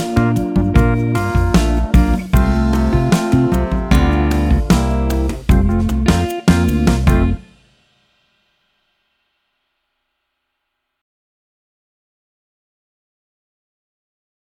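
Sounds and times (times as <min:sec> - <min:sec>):
piano: 0:00.0 - 0:07.5
trombone: 0:00.1 - 0:07.4
alto saxophone: 0:01.3 - 0:06.2.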